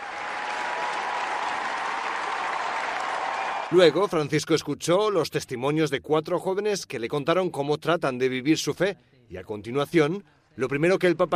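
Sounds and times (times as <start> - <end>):
large crowd of young people applauding: 0.0 - 4.2
speech: 3.7 - 11.3.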